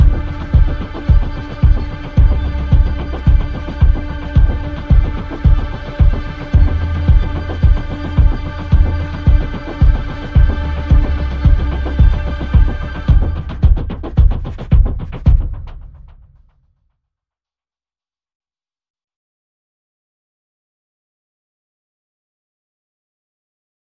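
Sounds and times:
strings: 0.0s - 15.8s
bass: 0.0s - 16.4s
drums: 0.0s - 16.5s.

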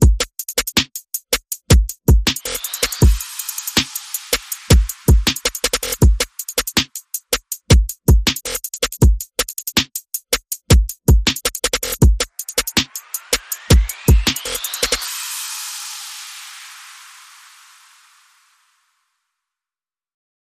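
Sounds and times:
percussion: 0.0s - 18.8s
sound effects: 2.4s - 6.4s, 12.3s - 18.8s.

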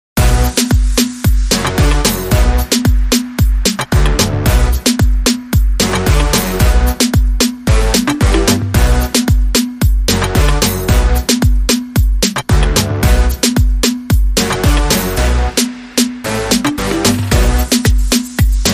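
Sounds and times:
short rhythm mix: 0.2s - 18.7s.

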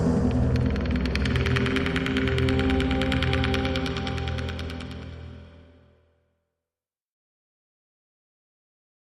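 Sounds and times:
ominous footsteps: 0.0s - 5.6s.

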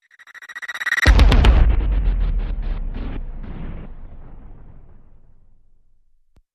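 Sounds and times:
hit: 1.0s - 6.2s.

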